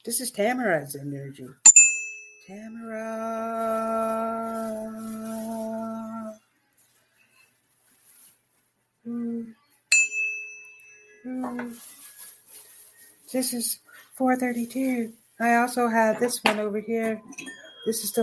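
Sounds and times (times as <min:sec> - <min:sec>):
speech: 0:00.0 - 0:01.7, 0:02.5 - 0:05.5, 0:11.3 - 0:12.0, 0:13.3 - 0:18.2
bell ringing: 0:01.7 - 0:02.9, 0:09.9 - 0:11.7, 0:17.1 - 0:18.2.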